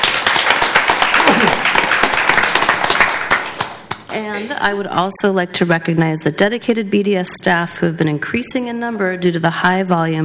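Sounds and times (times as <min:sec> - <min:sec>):
round of applause: 0:00.0 - 0:04.2
speech: 0:04.2 - 0:10.2.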